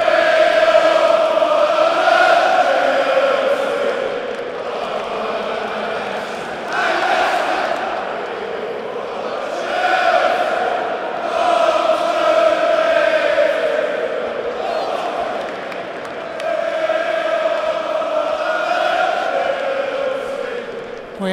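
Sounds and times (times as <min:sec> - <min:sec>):
crowd of football fans chanting a club song in unison: 0:00.0 - 0:21.3.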